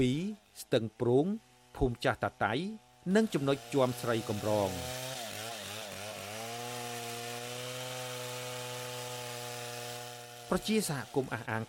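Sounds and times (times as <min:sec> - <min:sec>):
speech: 0:00.0 - 0:05.1, 0:10.5 - 0:11.6
chainsaws felling trees in Cambodia's Prey Lang forest during illegal logging: 0:00.0 - 0:11.6.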